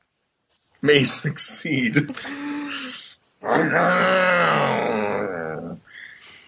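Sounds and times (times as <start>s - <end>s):
speech: 0.8s - 2.4s, 3.5s - 4.3s
voice imitating a chainsaw: 2.1s - 5.8s.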